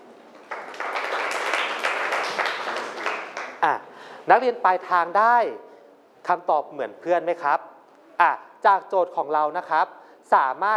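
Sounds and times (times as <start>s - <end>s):
students clapping: 0.4s - 3.6s
speech: 3.6s - 10.7s.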